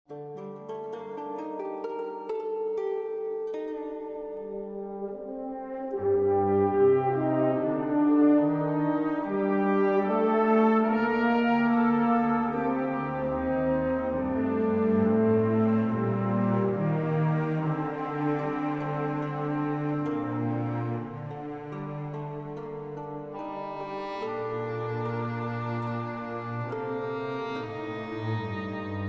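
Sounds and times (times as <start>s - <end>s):
music: 0.0s - 29.0s.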